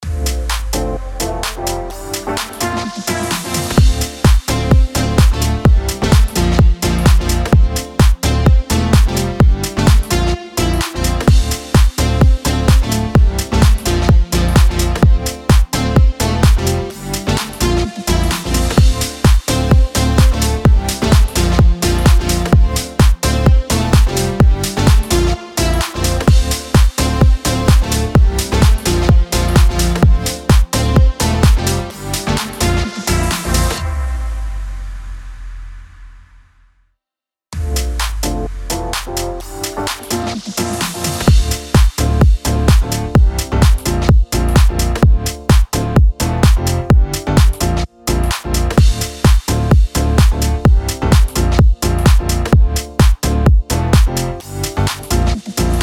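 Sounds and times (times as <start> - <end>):
house music in D minor at 128 BPM: 0.0 - 35.4, 37.6 - 55.8.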